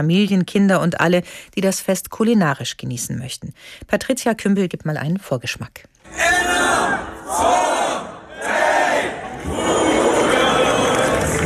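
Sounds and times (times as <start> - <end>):
speech: 0.0 - 8.0
festival crowd cheering: 6.1 - 11.4.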